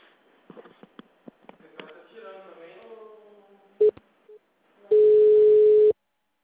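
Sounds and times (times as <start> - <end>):
telephone ringback tone while waiting for a power utility call center: 4.9 - 5.9.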